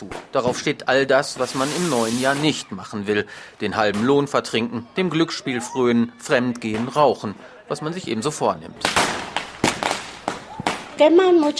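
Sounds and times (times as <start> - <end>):
speech: 0.0 - 9.2, 11.0 - 11.5
firecrackers exploding in the street: 1.2 - 2.6, 8.8 - 11.5.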